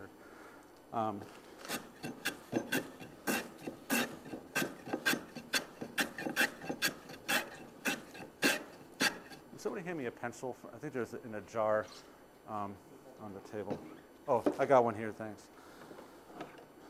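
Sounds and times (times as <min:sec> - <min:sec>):
speech: 0:00.9 - 0:01.4, 0:09.9 - 0:15.6
hand tool carving wood off a model: 0:01.5 - 0:09.6.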